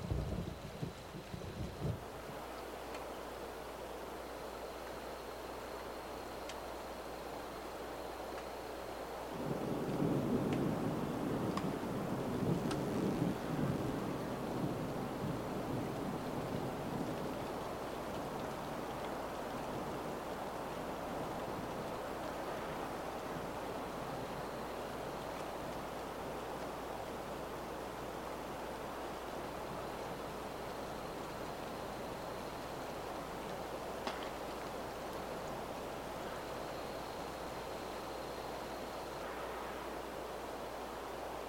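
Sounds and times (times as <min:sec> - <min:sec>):
rain: 0:00.0 - 0:41.4
thunder: 0:09.4 - 0:19.1.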